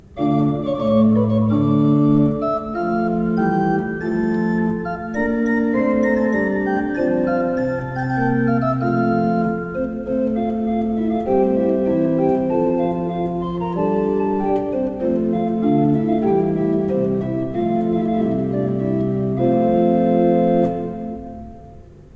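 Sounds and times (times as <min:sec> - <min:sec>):
used organ playing: 0:00.0 - 0:22.1.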